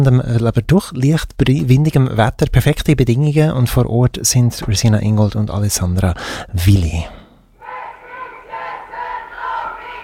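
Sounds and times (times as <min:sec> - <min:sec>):
speech: 0:00.0 - 0:07.2
large crowd chanting in unison at street demonstration: 0:07.6 - 0:10.0.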